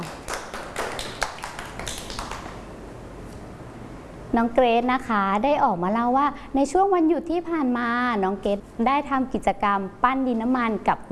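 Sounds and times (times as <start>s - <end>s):
children clapping: 0.0s - 2.7s
speech: 4.4s - 11.0s.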